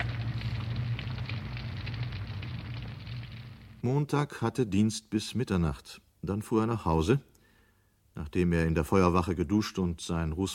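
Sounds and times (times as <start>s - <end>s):
deliberately set fire burning a large collection of books: 0.0s - 3.8s
speech: 3.8s - 7.3s, 8.2s - 10.5s.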